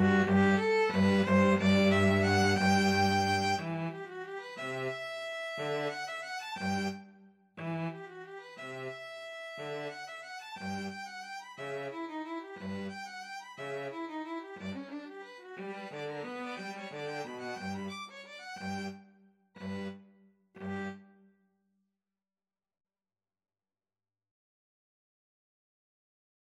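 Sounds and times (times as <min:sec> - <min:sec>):
two violins playing a serenade: 0:00.0 - 0:07.0, 0:07.6 - 0:18.9, 0:19.6 - 0:20.0, 0:20.6 - 0:21.0.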